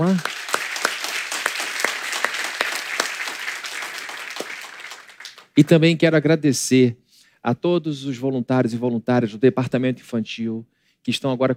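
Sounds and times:
speech: 0.0s - 0.3s, 5.6s - 11.5s
audience applause: 0.0s - 5.8s.

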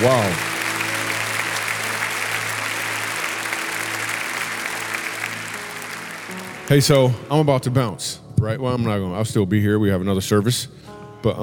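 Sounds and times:
speech: 0.0s - 0.5s, 6.7s - 11.4s
audience applause: 0.0s - 7.3s.

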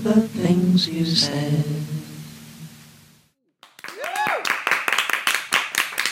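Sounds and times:
speech: 0.2s - 1.8s
applause: 3.6s - 6.1s.

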